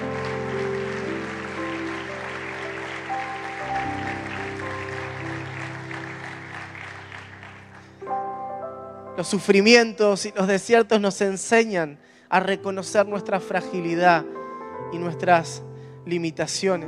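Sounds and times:
audience applauding: 0.0 - 8.1
held keyboard chords: 0.0 - 16.8
speech: 9.2 - 16.8.

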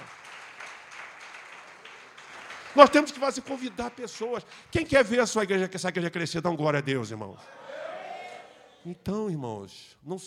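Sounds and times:
church congregation applauding in praise: 0.0 - 5.7
speech: 2.8 - 7.8, 8.8 - 10.2.

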